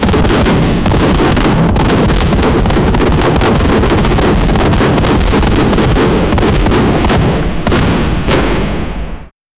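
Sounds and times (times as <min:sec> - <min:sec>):
rocket fireworks being fired: 0:00.0 - 0:09.3.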